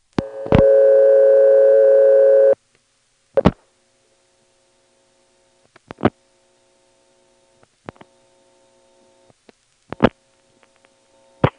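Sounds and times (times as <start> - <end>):
telephone dial tone: 0.2 - 2.6.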